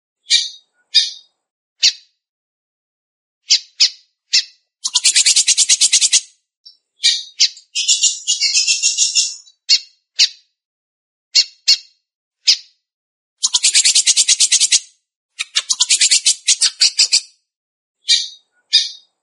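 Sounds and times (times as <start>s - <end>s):
Belgian canary singing fast buzzy trills: 0.2s - 2.0s, 3.5s - 9.8s, 13.4s - 14.8s, 15.4s - 17.3s, 18.0s - 19.2s.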